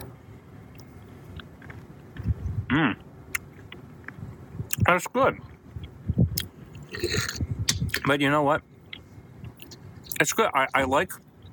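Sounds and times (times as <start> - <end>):
low hum: 0.0 - 11.5
speech: 2.7 - 3.0, 4.9 - 5.5, 7.0 - 7.4, 8.0 - 8.7, 10.2 - 11.2
chewing a Buster Bar Parfait of peanuts, chocolate and soft serve: 5.8 - 8.1.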